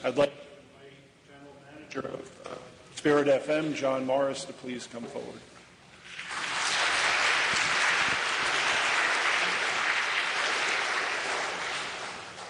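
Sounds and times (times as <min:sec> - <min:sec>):
speech: 0:00.0 - 0:00.5, 0:02.0 - 0:05.5
audience applause: 0:06.1 - 0:12.4.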